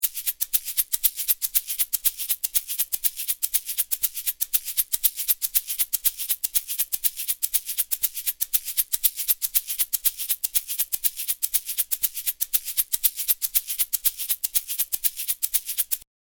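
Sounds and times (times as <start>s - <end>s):
shaker: 0.0s - 16.1s.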